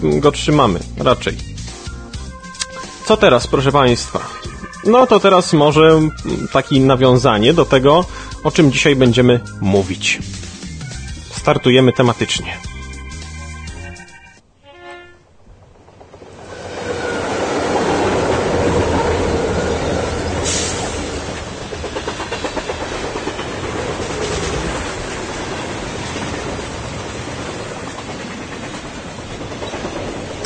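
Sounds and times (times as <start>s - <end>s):
speech: 0.0s - 1.5s, 3.1s - 10.5s, 11.4s - 12.7s
train passing on rails: 0.0s - 30.4s.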